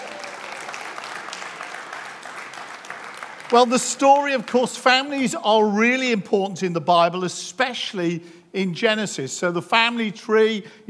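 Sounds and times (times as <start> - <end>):
audience applause: 0.0 - 4.6
speech: 3.5 - 10.8.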